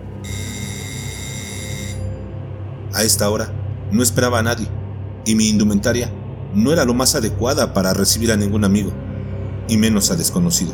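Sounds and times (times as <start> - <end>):
doorbell ringing with a bright electronic tone: 0.2 - 2.2
speech: 3.0 - 9.0, 9.7 - 10.7.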